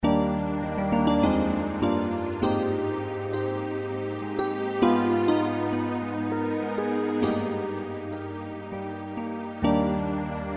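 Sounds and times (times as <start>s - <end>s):
Yamaha TG33 synthesizer: 0.0s - 10.5s.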